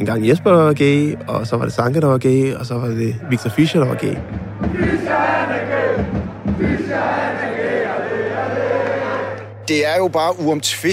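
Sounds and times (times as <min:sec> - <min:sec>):
speech: 0:00.0 - 0:08.0, 0:09.7 - 0:10.9
football stadium crowd chanting: 0:03.1 - 0:09.6.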